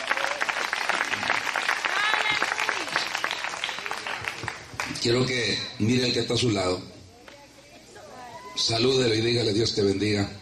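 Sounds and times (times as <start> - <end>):
audience applauding: 0.0 - 5.3
speech: 5.0 - 7.0, 8.6 - 10.4.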